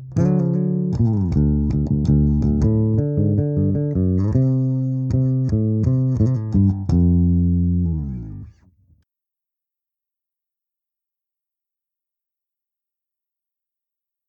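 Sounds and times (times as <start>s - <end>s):
Flying V electric guitar: 0.0s - 8.5s.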